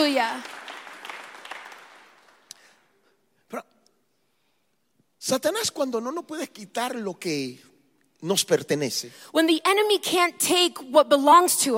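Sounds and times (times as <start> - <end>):
speech: 0.0 - 0.6, 3.5 - 3.7, 5.2 - 11.7
audience clapping: 0.0 - 2.9.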